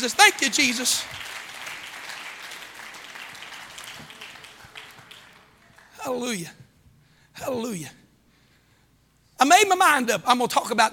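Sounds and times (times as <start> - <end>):
speech: 0.0 - 1.4, 6.0 - 6.6, 7.4 - 8.0, 9.4 - 10.9
audience clapping: 0.0 - 6.1.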